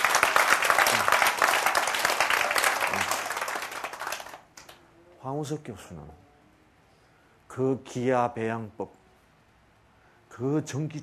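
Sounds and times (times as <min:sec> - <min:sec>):
audience applause: 0:00.0 - 0:04.8
speech: 0:05.2 - 0:06.3, 0:07.6 - 0:09.0, 0:10.4 - 0:11.0.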